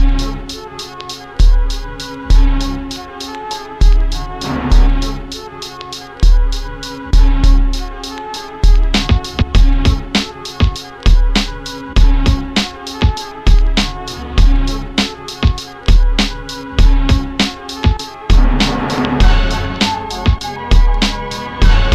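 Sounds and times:
music beat: 0.0s - 21.9s.

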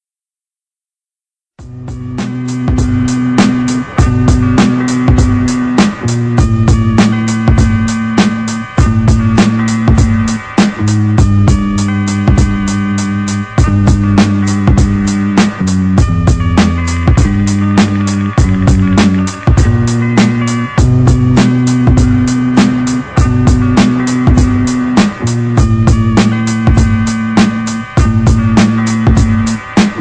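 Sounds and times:
sadistic instrumental music: 1.6s - 29.9s.

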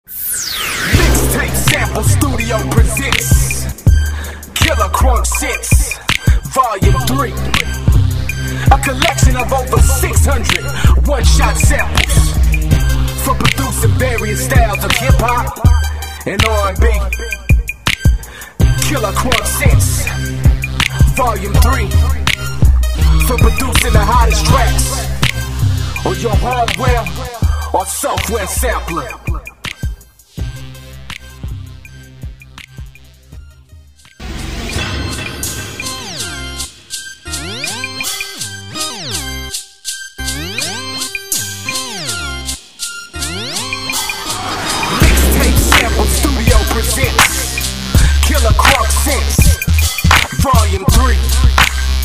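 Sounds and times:
vocal mix music: 0.8s - 30.0s, 40.4s - 52.0s.

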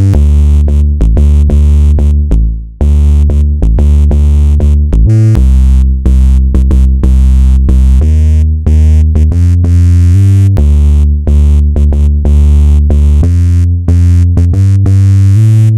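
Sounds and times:
hip hop bass loop: 0.0s - 15.7s.

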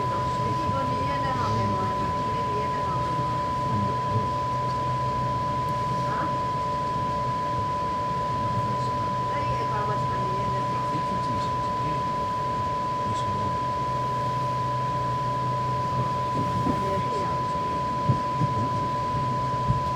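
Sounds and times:
quiet onboard train ambience: 0.0s - 19.9s.

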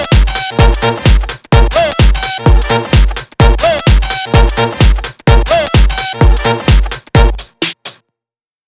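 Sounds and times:
trumpet: 0.0s - 7.7s
house music: 0.0s - 8.0s.

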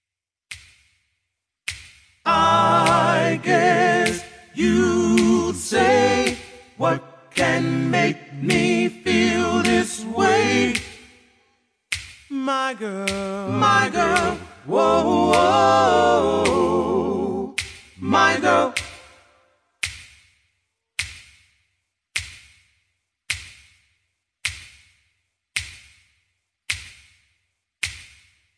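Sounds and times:
a cappella singing with all vocals: 2.3s - 11.3s, 12.3s - 19.4s.

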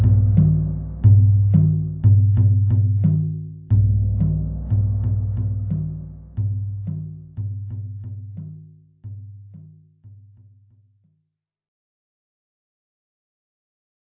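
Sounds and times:
tribal music: 0.0s - 9.7s.

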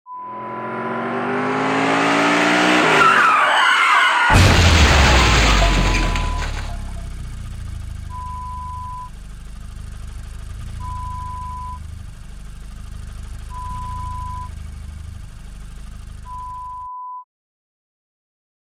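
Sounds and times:
car crash: 0.4s - 8.2s.

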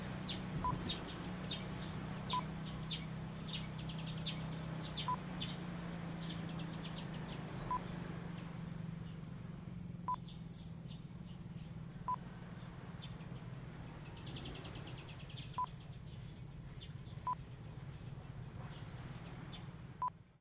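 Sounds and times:
beach ambience at Sabang Beach in the Philippines: 0.0s - 20.1s.

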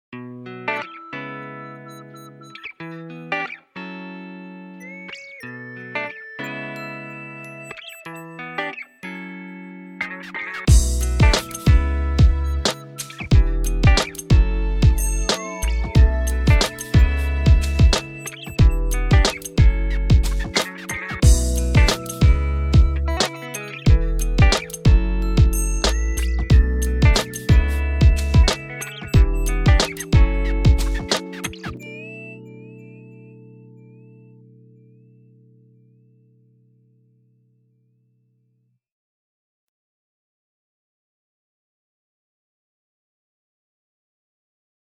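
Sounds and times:
music beat: 10.7s - 31.7s.

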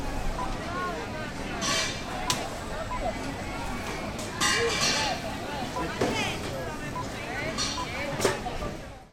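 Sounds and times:
fruit and vegetable market ambience in Croatia: 0.0s - 9.1s.

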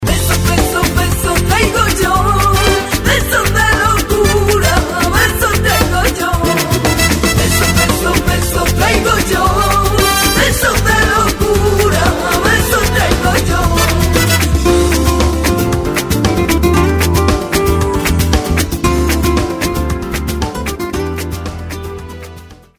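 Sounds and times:
flamenco music: 0.0s - 22.7s.

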